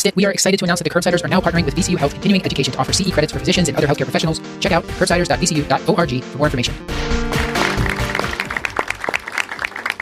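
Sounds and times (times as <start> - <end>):
speech: 0.0 - 7.4
live audience applause: 7.3 - 10.0.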